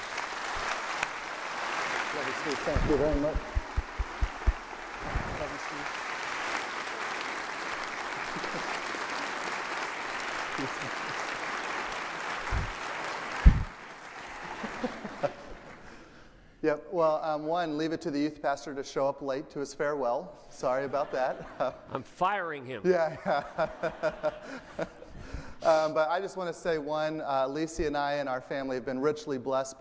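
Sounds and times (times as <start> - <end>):
audience round of applause: 0.0 - 16.0
speech: 2.2 - 3.5, 16.7 - 25.0, 25.7 - 29.8
laughter: 8.0 - 9.6, 10.2 - 11.6, 14.2 - 15.8, 20.7 - 22.0, 22.9 - 26.0.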